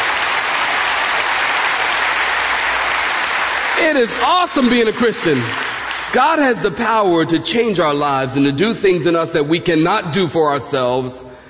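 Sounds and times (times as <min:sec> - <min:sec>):
audience applause: 0:00.0 - 0:06.5
speech: 0:03.8 - 0:11.3.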